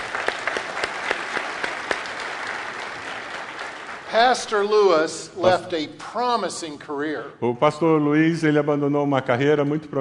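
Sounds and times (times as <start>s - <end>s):
audience applause: 0.0s - 5.0s
speech: 4.1s - 10.0s.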